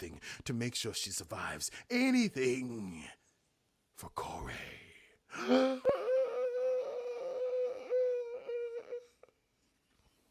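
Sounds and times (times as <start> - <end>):
speech: 0.0 - 3.2, 4.0 - 6.0
person gasping theatrically: 5.3 - 8.0
person crying out: 5.4 - 9.3.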